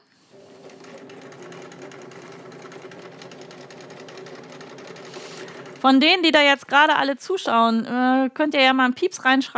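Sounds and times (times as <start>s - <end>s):
sewing machine stitching: 0.2s - 7.3s
speech: 5.8s - 9.5s.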